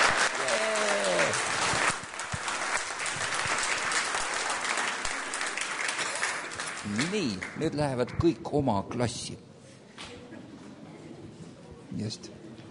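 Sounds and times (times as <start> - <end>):
audience applause: 0.0 - 7.8
speech: 7.0 - 9.5, 12.0 - 12.4.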